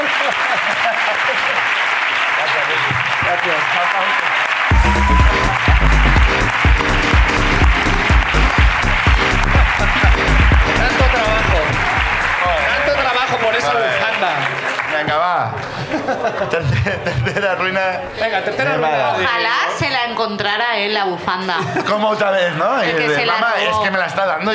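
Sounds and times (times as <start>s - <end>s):
laughter: 0.0s - 1.8s, 8.3s - 11.9s, 15.6s - 18.8s
group clapping and cheering: 0.0s - 16.0s
upbeat music with heavy beat: 4.7s - 13.1s
speech: 15.1s - 24.5s.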